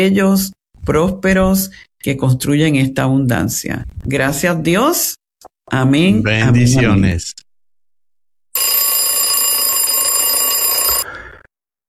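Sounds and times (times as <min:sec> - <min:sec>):
speech: 0:00.0 - 0:07.4
alarm clock ringing: 0:08.5 - 0:11.0.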